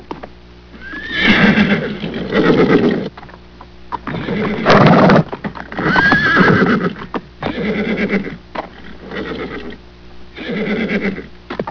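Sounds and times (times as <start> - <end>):
horse whinnying: 0.8 - 3.1, 4.0 - 9.8, 10.4 - 11.3.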